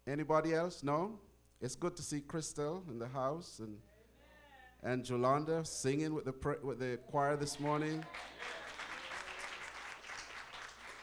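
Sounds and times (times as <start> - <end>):
speech: 0.1 - 3.9, 4.8 - 8.5
audience applause: 7.4 - 11.0.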